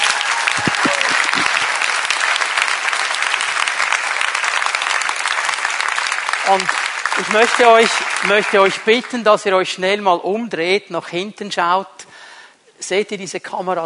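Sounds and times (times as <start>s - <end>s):
audience applause: 0.0s - 9.2s
speech: 6.5s - 12.0s, 12.8s - 13.8s.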